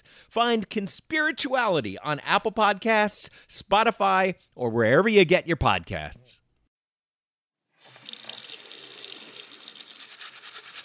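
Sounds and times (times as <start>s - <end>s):
speech: 0.3s - 6.4s
tap water running into a sink while hands are washed: 7.8s - 10.6s.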